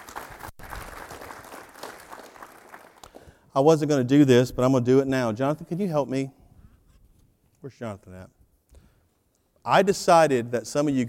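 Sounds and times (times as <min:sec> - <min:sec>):
audience clapping: 0:00.0 - 0:03.4
speech: 0:03.6 - 0:06.4, 0:07.6 - 0:08.4, 0:09.6 - 0:11.0.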